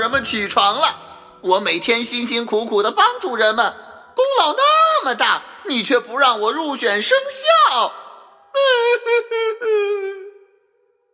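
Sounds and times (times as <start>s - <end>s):
speech: 0.0s - 8.0s, 8.9s - 9.9s
human voice performing a rooster character crying: 8.6s - 10.5s.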